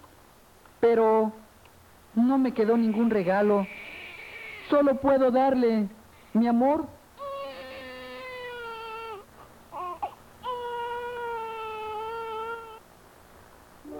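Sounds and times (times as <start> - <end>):
speech: 0.8 - 1.4, 2.2 - 3.8, 4.7 - 7.0
infant crying: 2.9 - 4.9, 7.2 - 12.9.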